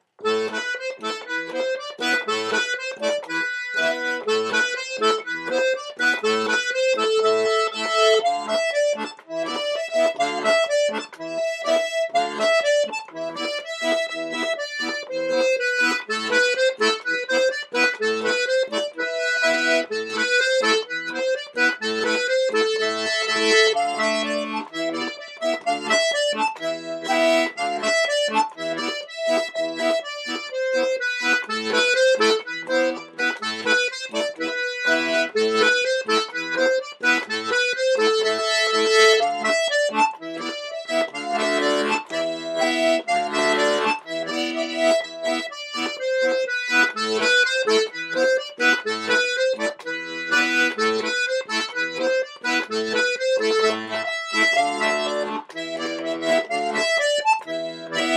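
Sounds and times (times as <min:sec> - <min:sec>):
polka music: 0:00.0 - 0:58.1.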